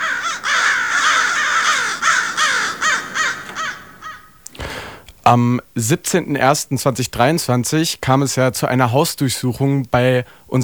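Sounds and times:
crows cawing: 0.0 - 5.0
speech: 5.3 - 10.6.

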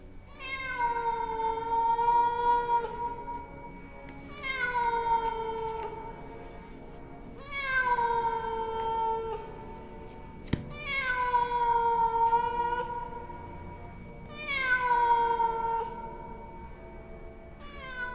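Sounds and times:
cat yowling at a window: 0.3 - 3.3, 4.3 - 6.0, 7.4 - 9.6, 10.7 - 13.3, 14.3 - 16.3, 17.6 - 18.1.

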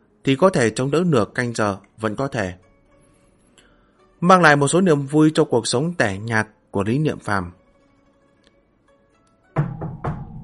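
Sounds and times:
speech: 0.2 - 2.6, 4.2 - 7.6
knock on a door: 9.6 - 10.4.

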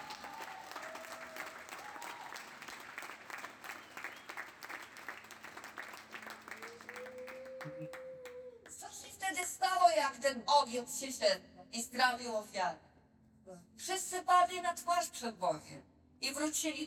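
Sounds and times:
audience applause: 0.0 - 8.4
speech: 7.8 - 8.0, 10.2 - 12.9, 13.5 - 16.8.

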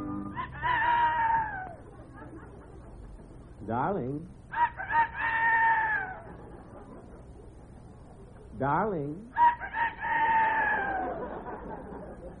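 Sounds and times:
rooster crowing: 0.2 - 1.9, 4.5 - 6.4, 9.3 - 11.6
laughter: 0.4 - 3.5, 6.0 - 8.5, 10.3 - 12.3
speech: 3.7 - 4.4, 8.6 - 9.5.

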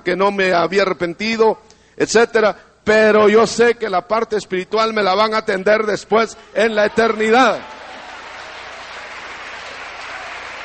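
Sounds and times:
speech: 0.0 - 7.8
congregation applauding during a Christian sermon: 6.9 - 10.6.

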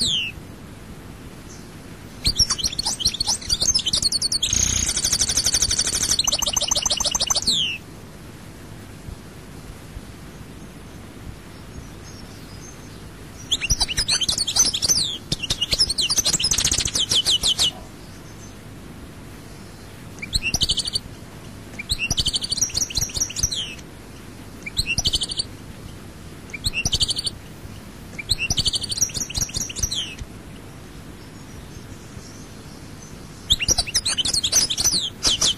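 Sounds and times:
European goldfinch song: 1.5 - 7.8, 11.7 - 18.6, 19.7 - 21.0, 21.8 - 23.8, 24.6 - 25.5, 26.5 - 27.4, 28.2 - 30.2, 31.2 - 35.5.

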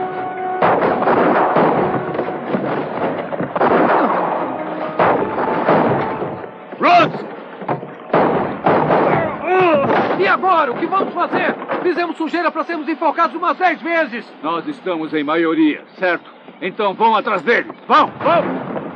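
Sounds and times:
heavy booming blasts: 0.0 - 12.0, 18.0 - 18.9
gunfire volleys in a shootout from a dubbed action film: 0.6 - 7.3, 8.0 - 10.4
speech: 10.5 - 18.6.

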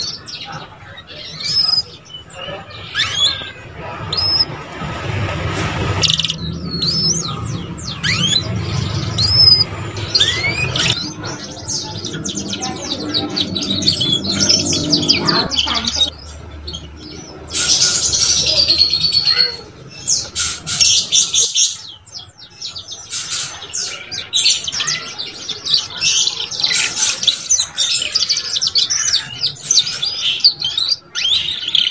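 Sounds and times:
canary song: 0.0 - 31.8
low hum: 3.7 - 20.3.

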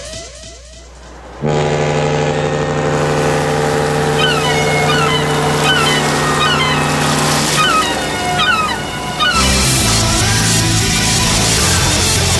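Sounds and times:
ship's horn from a boat at sea: 1.1 - 12.3
waves at sea: 4.0 - 10.0
seagull-like cries: 4.1 - 9.7.

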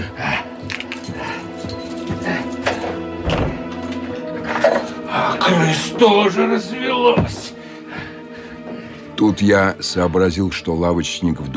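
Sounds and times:
doors being shut and locked: 0.7 - 5.0
speech: 5.7 - 7.5, 9.2 - 11.5.

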